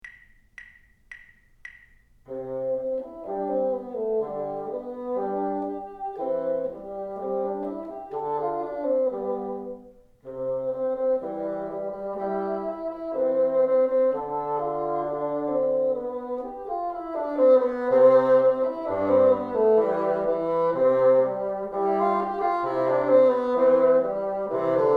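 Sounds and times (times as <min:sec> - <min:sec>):
bassoon: 0:02.3 - 0:24.9.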